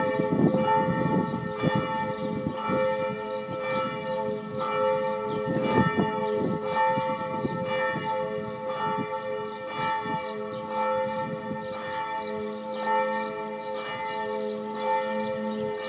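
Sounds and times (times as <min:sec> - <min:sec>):
church bells of Zeilitzheim ringing: 0:00.0 - 0:15.8.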